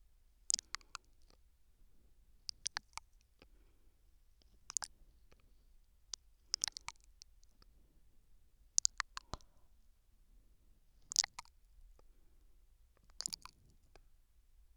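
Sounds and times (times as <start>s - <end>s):
soft nibbling on the left ear: 0.5s - 1.0s, 2.5s - 3.1s, 4.5s - 4.9s, 6.5s - 7.1s, 8.8s - 9.5s, 11.1s - 11.5s, 13.1s - 13.6s.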